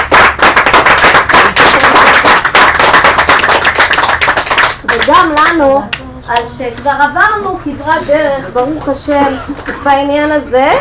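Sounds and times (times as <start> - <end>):
applause from many hands: 0.0 - 5.6
speech: 5.2 - 10.7.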